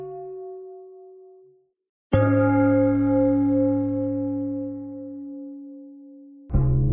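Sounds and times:
bell: 0:02.2 - 0:06.8.

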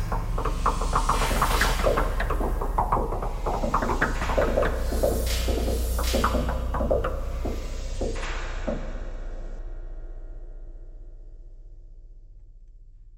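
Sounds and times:
knocking thread noise: 0:00.0 - 0:09.0.

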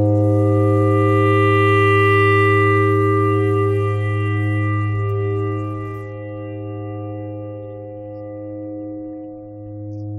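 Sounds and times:
clarinet thread noise: 0:00.1 - 0:07.3.

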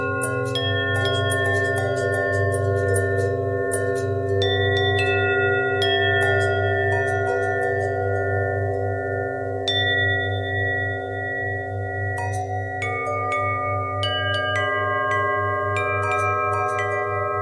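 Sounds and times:
long bell with twisting pitch bend: 0:00.0 - 0:17.4.

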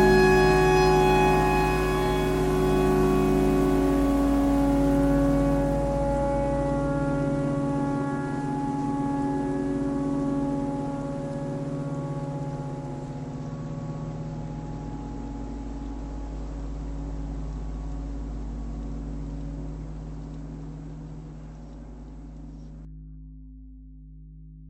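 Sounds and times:
clarinet playing pentatonic tornado siren: 0:00.0 - 0:12.9.

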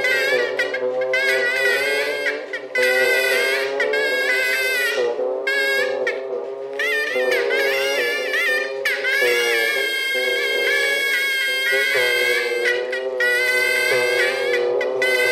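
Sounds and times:
bagpipe: 0:00.0 - 0:15.3
geese: 0:00.0 - 0:15.3.

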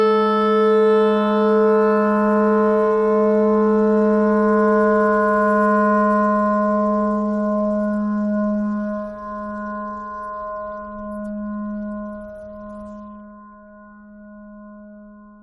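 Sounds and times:
clarinet notes: 0:00.0 - 0:04.8
noise: 0:00.0 - 0:15.4.

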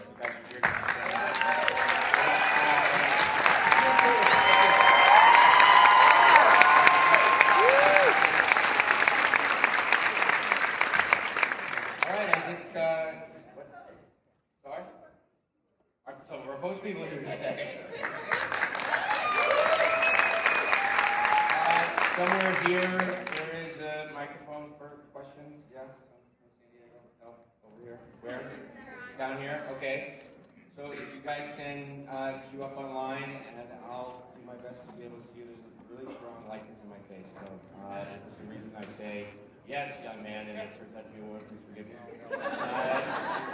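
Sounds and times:
crowd clapping: 0:00.0 - 0:12.8, 0:17.9 - 0:23.7
scattered cheers: 0:01.0 - 0:10.1, 0:18.4 - 0:22.9
laughter: 0:16.8 - 0:18.8, 0:42.0 - 0:43.5.

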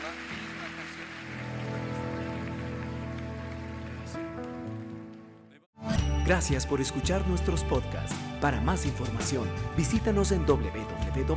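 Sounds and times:
loud applause: 0:00.0 - 0:05.4
speech: 0:06.3 - 0:11.3.

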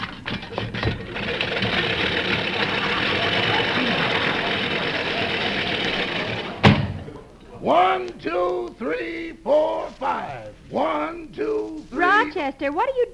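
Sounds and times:
lawnmower engine running: 0:00.0 - 0:08.0
laughter: 0:01.7 - 0:12.5
speech: 0:08.2 - 0:11.6, 0:12.3 - 0:13.1.

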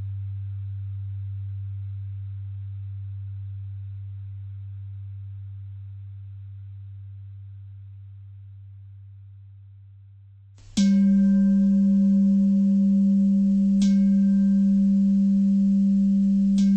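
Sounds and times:
bell: 0:10.8 - 0:16.7.

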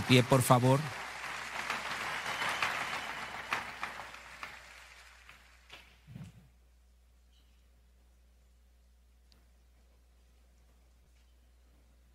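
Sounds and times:
audience applauding: 0:00.0 - 0:06.0.

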